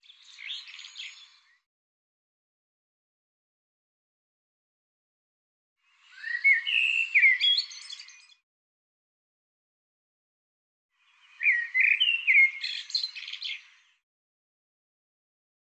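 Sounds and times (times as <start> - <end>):
bird twittering with sweeping notes: 6.1 - 8.3, 11.3 - 13.7.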